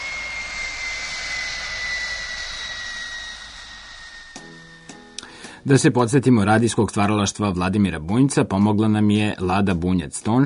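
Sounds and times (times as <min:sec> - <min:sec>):
jet airplane engine roaring on airport runway: 0:00.0 - 0:06.1
speech: 0:05.6 - 0:10.4.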